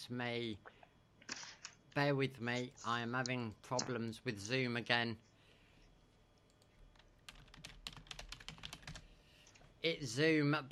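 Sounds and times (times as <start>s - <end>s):
speech: 0.0s - 0.8s, 2.0s - 5.3s, 9.8s - 10.7s
rapid typing on a computer keyboard in a Zoom chat: 6.5s - 9.1s.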